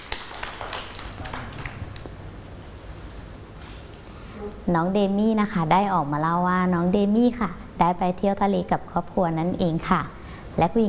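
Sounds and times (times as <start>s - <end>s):
children clapping: 0.0s - 2.2s
speech: 4.4s - 10.8s.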